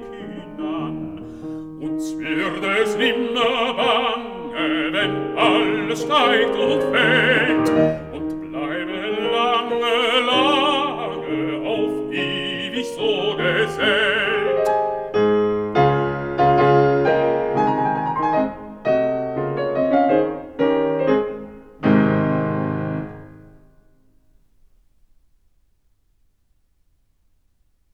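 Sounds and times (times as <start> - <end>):
person singing a song: 0.0 - 15.1
piano accompanying a song: 0.0 - 25.8.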